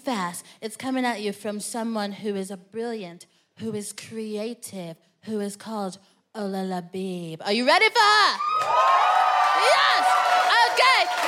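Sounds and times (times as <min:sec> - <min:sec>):
speech: 0:00.0 - 0:09.0
high-pitched whoops and shouts: 0:08.3 - 0:11.2
crowd cheering: 0:08.4 - 0:11.2.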